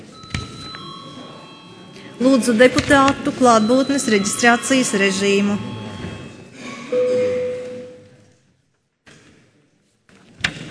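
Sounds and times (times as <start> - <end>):
parliament electric chamber bell ringing: 0.0 - 8.3
speech: 2.2 - 5.8.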